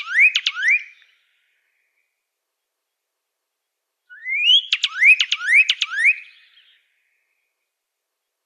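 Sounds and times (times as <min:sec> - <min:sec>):
Pyrrhuloxia singing rising whistles: 0:00.0 - 0:01.2, 0:04.1 - 0:06.8.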